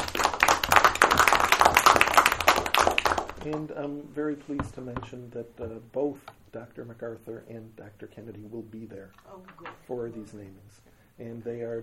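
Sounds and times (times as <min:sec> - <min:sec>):
audience applause: 0:00.0 - 0:03.5
speech: 0:03.5 - 0:11.8.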